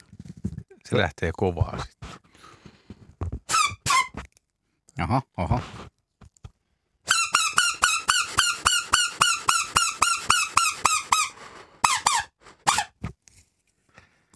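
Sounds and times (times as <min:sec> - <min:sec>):
speech: 0:00.9 - 0:02.0, 0:05.0 - 0:05.9
shrill squeaky call blown on a plastic strip: 0:03.5 - 0:04.3, 0:07.1 - 0:13.0.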